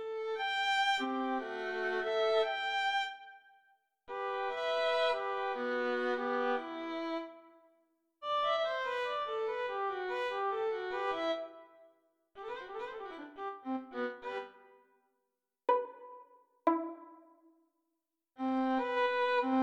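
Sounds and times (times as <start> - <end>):
solo violin piece: 0.0 - 3.2, 4.1 - 7.4, 8.2 - 11.6, 12.4 - 14.6, 15.7 - 17.2, 18.4 - 19.6.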